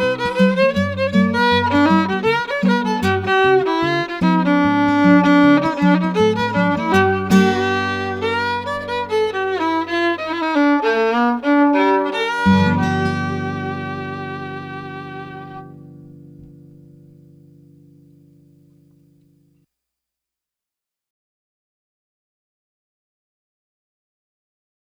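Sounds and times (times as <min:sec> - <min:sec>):
blues music field recording from Mississippi: 0:00.0 - 0:18.0.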